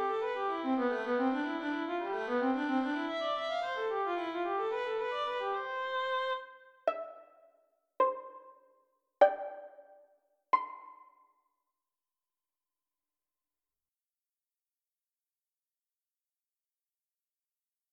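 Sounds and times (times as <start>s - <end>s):
violin piece: 0.0s - 7.4s, 8.0s - 8.6s, 9.2s - 10.0s, 10.6s - 11.0s.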